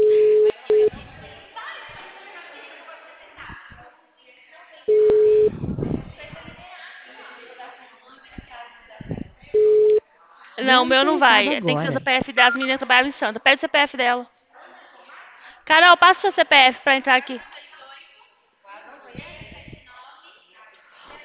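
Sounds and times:
murmuring voices and chatter: 0.0s - 21.2s
telephone call ringing tone: 4.9s - 5.6s, 9.6s - 10.0s
speech: 10.7s - 14.4s, 15.7s - 17.5s.

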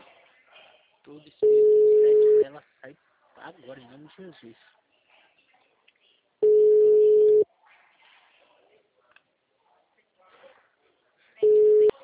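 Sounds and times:
speech: 1.1s - 1.8s, 2.5s - 4.8s
unanswered telephone call ringback tones: 1.4s - 2.4s, 6.4s - 7.4s, 11.4s - 11.9s.

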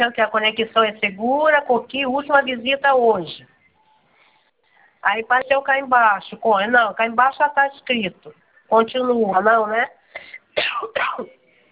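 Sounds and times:
speech: 0.0s - 3.5s, 5.0s - 11.4s
harsh, raspy coughs from a woman with a cold: 10.2s - 11.4s.

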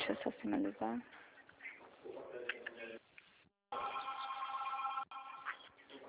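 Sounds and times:
speech: 0.1s - 1.3s, 2.0s - 2.6s
telephone ringing: 3.7s - 5.7s.

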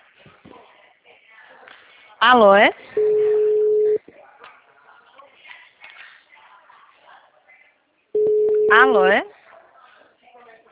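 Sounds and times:
speech: 2.2s - 2.9s, 8.8s - 9.3s
telephone busy signal: 3.0s - 4.0s, 8.2s - 8.9s.

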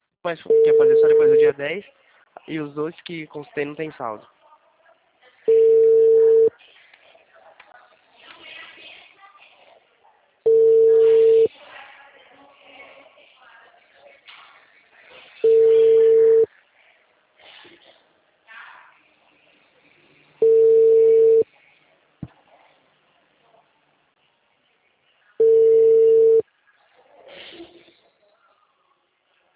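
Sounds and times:
speech: 0.2s - 4.4s
faint murmur: 0.3s - 29.5s
ringback tone of an outgoing phone call: 0.5s - 1.5s, 5.5s - 6.5s, 10.5s - 11.5s, 15.4s - 16.5s, 20.4s - 21.5s, 25.4s - 26.4s.

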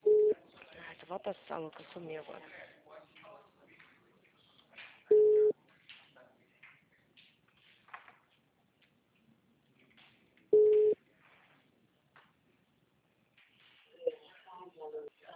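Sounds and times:
telephone busy tone after a dropped phone call: 0.0s - 0.4s, 5.1s - 5.5s, 10.6s - 11.0s
speech: 1.1s - 2.8s.

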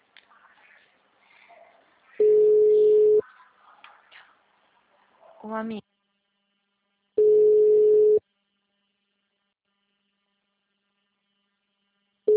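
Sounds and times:
telephone busy signal: 2.2s - 3.2s, 7.2s - 8.2s
speech: 5.4s - 5.8s.

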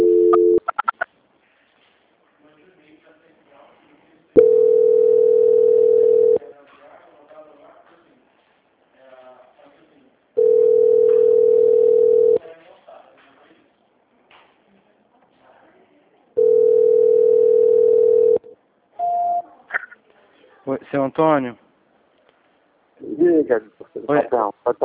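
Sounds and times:
ringing tone on a phone line while a call is transferred: 0.0s - 0.7s, 4.4s - 6.4s, 10.4s - 12.4s, 16.4s - 19.4s
speech: 20.9s - 21.6s, 23.5s - 24.8s.

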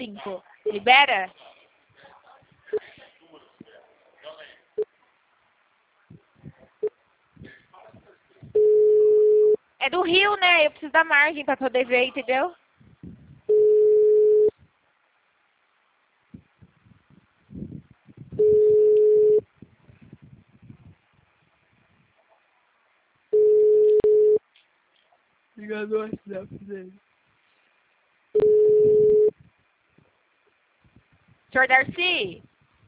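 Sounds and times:
speech: 0.2s - 1.4s, 9.8s - 12.6s, 25.8s - 27.1s, 31.6s - 32.5s
telephone line tone beeps after a dropped call: 8.6s - 9.6s, 13.5s - 14.5s, 18.4s - 19.4s, 23.4s - 24.4s, 28.4s - 29.3s.

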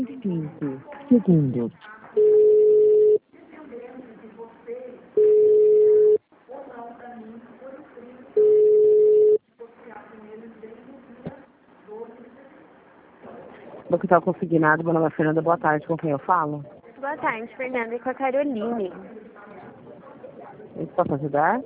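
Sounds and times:
recorded automated voice speaking: 0.0s - 1.8s
speech: 0.2s - 2.0s, 13.9s - 19.2s, 21.0s - 21.6s
telephone hold tone while a bank call is transferred: 2.2s - 3.2s, 5.2s - 6.2s, 8.4s - 9.4s.

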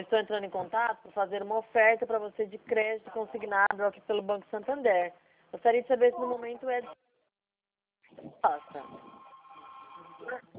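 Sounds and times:
speech: 0.0s - 7.0s, 8.2s - 9.2s, 10.2s - 10.5s
telephone ringing: 8.4s - 10.4s.

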